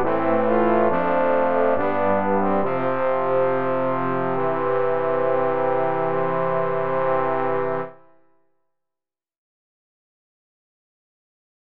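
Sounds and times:
trombone quartet playing: 0.0s - 8.0s.

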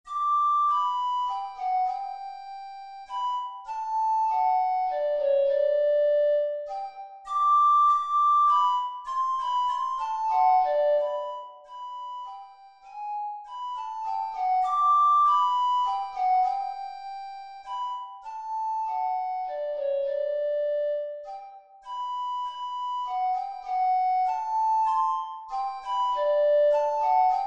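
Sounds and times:
andante piece in G major: 0.1s - 27.4s.

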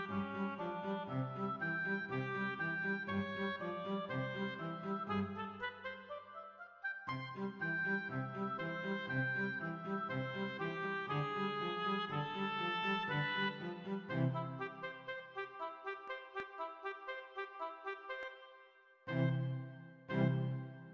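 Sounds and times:
cello playing an animato piece: 0.0s - 5.9s, 7.2s - 15.1s, 19.1s - 20.9s
oboe playing an animato piece: 0.0s - 20.9s.

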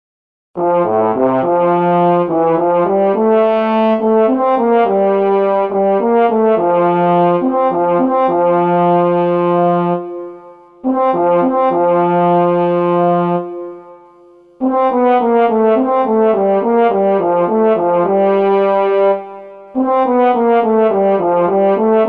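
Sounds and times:
short trombone duet: 0.6s - 22.0s.

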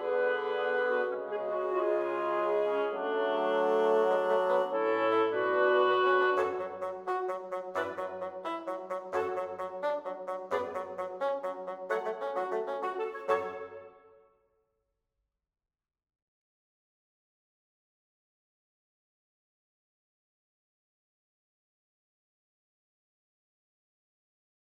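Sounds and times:
small woodwind quartet: 0.0s - 14.0s.

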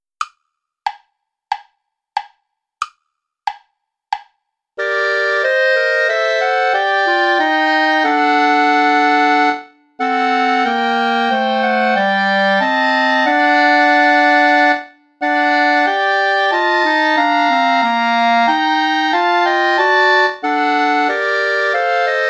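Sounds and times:
play-along backing music without clarinet: 4.8s - 22.2s.

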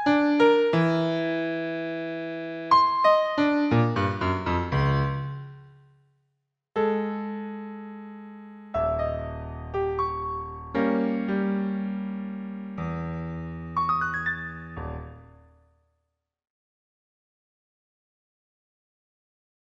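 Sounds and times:
piano piece: 0.0s - 5.9s, 6.8s - 15.7s.

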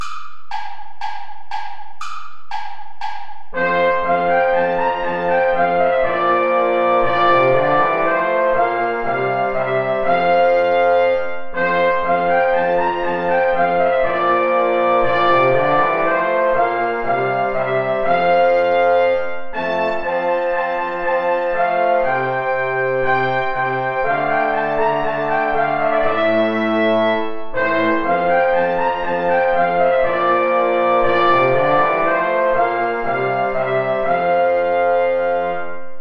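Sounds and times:
play-along backing track without trumpet: 0.0s - 35.9s.

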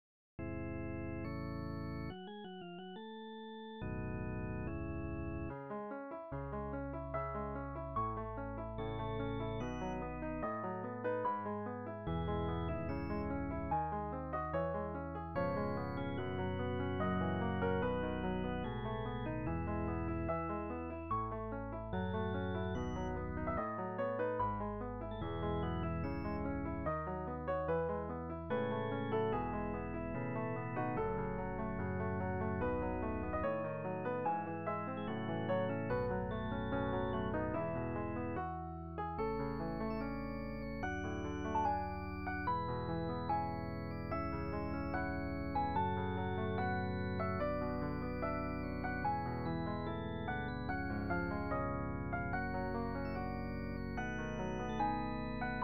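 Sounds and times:
organ: 0.4s - 5.6s, 7.1s - 55.6s
piano: 0.4s - 55.6s.

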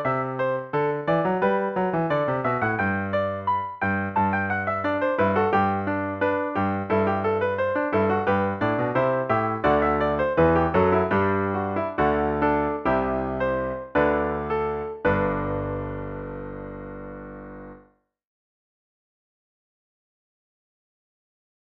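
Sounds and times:
baroque fugue: 0.0s - 17.3s.

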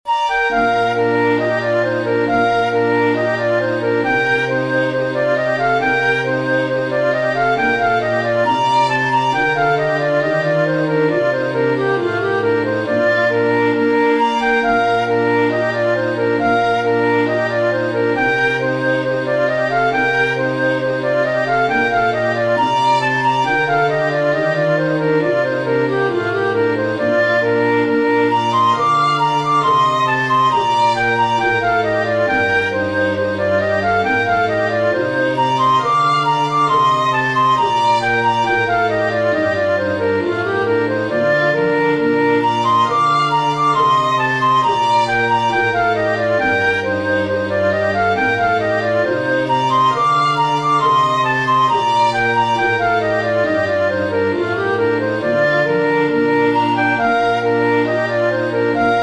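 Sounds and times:
flute playing a planxty: 0.0s - 59.0s
strings playing a planxty: 0.1s - 59.0s.

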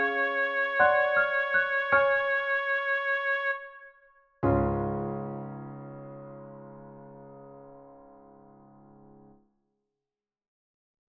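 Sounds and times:
oboe: 0.0s - 4.0s
piano: 0.0s - 9.4s.

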